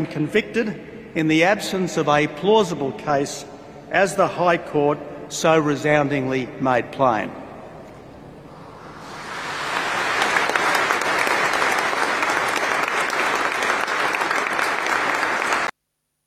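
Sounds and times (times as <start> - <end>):
speech: 0.0 - 7.4
applause at a Catholic church funeral service: 9.0 - 15.7.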